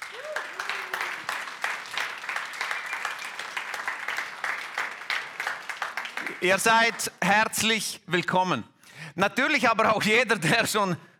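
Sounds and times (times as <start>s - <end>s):
audience applause: 0.0s - 7.2s
speech: 6.4s - 11.1s.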